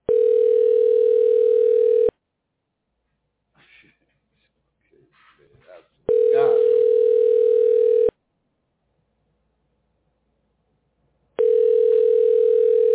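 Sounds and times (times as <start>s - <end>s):
telephone ringing: 0.1s - 2.1s, 6.1s - 8.1s, 11.4s - 12.9s.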